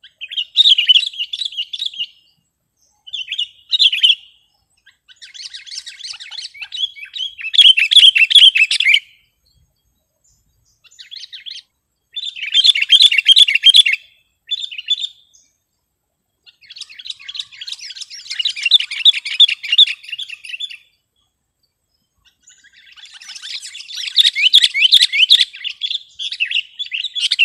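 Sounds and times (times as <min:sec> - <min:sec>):
sooty-headed bulbul song: 0:00.0 - 0:27.4.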